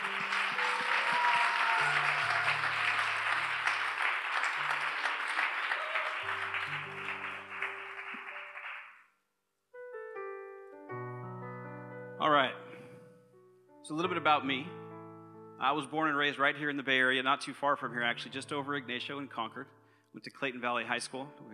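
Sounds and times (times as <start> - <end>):
audience applause: 0.0 - 9.0
speech: 13.9 - 14.8, 15.6 - 21.5.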